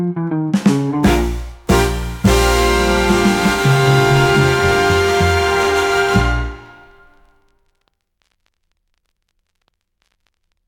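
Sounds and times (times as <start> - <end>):
big band swing music: 0.5 - 7.3.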